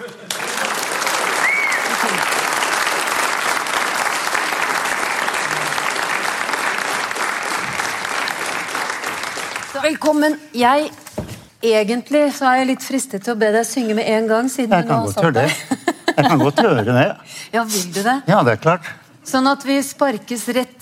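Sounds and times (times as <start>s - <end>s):
laughter: 0.0s - 1.0s, 15.0s - 17.1s
loud sustained audience applause: 0.0s - 9.9s
speech: 9.9s - 11.0s, 11.6s - 20.8s.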